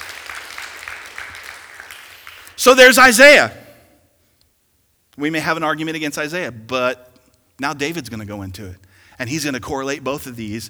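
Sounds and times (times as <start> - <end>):
audience applause: 0.0 - 3.2
speech: 2.6 - 3.6, 5.2 - 10.6.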